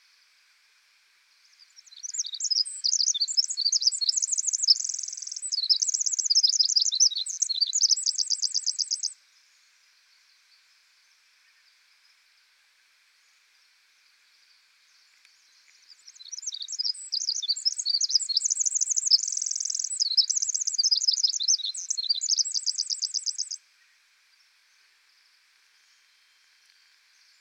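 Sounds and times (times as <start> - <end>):
Pacific wren singing: 1.8 - 9.2, 16.0 - 23.6.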